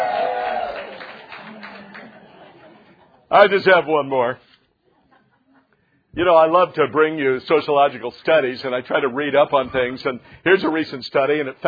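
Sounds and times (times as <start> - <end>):
crowd of women cheering with high-pitched whoops: 0.0 - 1.1
scattered applause: 0.0 - 2.8
speech: 3.3 - 4.5, 6.1 - 11.6.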